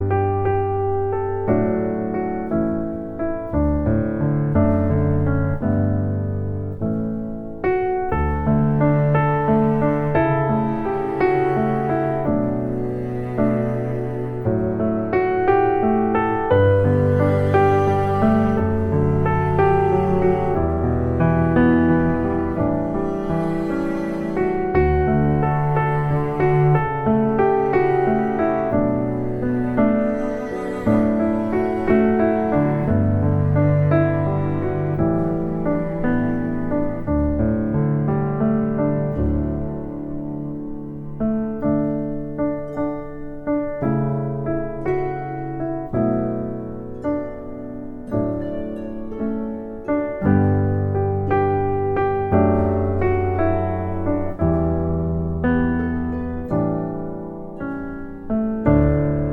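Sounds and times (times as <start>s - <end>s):
instrumental music: 0.0s - 59.3s.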